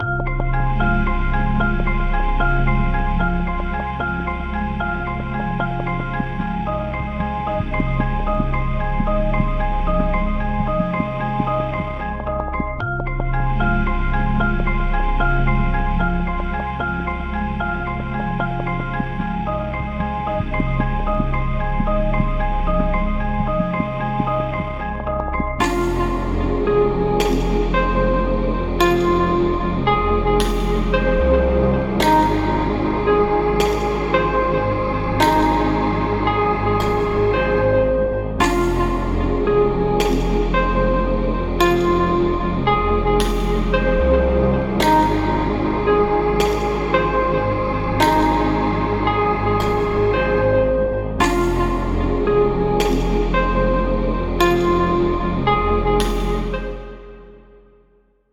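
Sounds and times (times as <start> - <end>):
hip hop music: 0.0 - 57.2.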